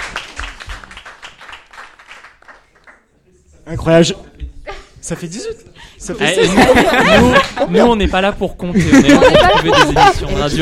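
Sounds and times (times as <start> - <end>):
applause: 0.0 - 3.1
speech: 3.7 - 4.3, 5.1 - 10.6
laughter: 4.7 - 10.6.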